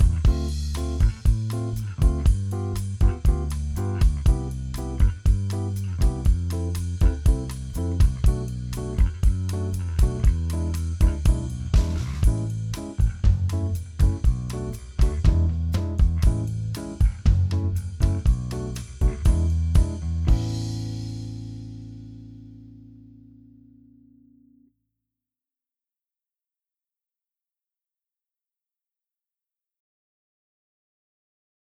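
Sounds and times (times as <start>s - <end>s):
backing track without guitar: 0.0s - 24.7s.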